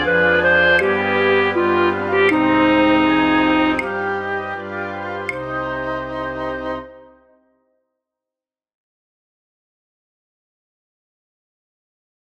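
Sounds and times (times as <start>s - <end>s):
flute orchestra playing for practice tracks: 0.0s - 7.5s.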